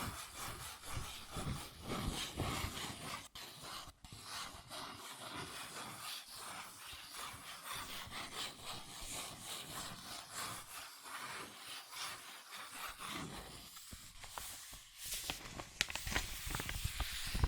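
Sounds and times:
cardboard and paper rubbed and scratched: 0:00.0 - 0:17.4
sharp taps and scrapes: 0:13.0 - 0:17.4.

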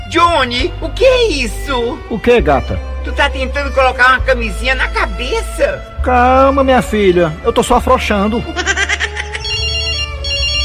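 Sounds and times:
speech: 0:00.1 - 0:08.8
laughter: 0:08.3 - 0:09.7
mobile phone ringing with a bright electronic ringtone: 0:08.7 - 0:10.6.

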